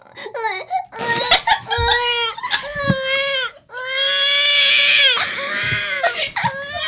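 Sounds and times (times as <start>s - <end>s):
adult imitating a baby crying: 0.4s - 6.8s.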